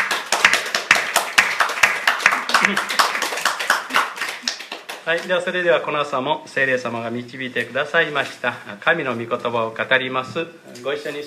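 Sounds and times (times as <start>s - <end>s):
church congregation applause during a service: 0.0s - 5.5s
speech: 2.7s - 2.9s, 5.1s - 11.2s.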